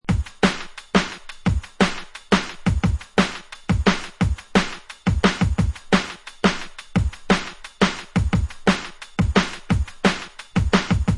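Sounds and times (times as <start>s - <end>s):
steppers dub beats: 0.1s - 11.1s.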